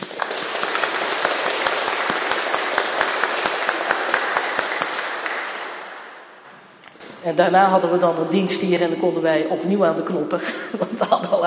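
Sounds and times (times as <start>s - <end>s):
audience applause: 0.0s - 6.4s
speech: 7.2s - 11.4s
laughter: 10.4s - 11.4s.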